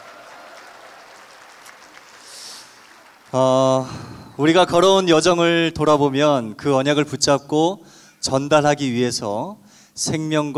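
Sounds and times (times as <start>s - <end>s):
audience applause: 0.0s - 4.3s
speech: 3.3s - 10.5s.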